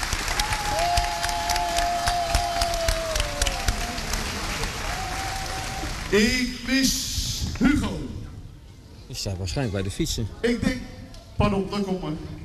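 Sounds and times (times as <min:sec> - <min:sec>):
audience applause: 0:00.0 - 0:06.3
speech: 0:06.1 - 0:07.0, 0:07.6 - 0:08.0, 0:09.2 - 0:12.4.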